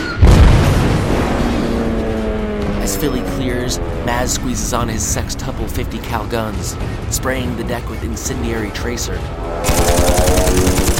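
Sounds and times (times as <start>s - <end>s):
bomb erupting on a battleship's deck: 0.2s - 2.0s
speech: 3.0s - 10.7s.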